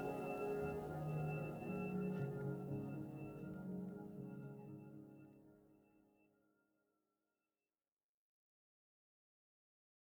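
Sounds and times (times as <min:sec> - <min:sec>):
piano piece: 0:00.0 - 0:05.6.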